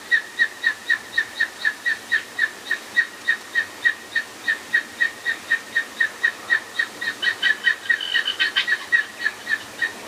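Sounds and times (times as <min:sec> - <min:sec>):
various birds: 0:00.0 - 0:10.0.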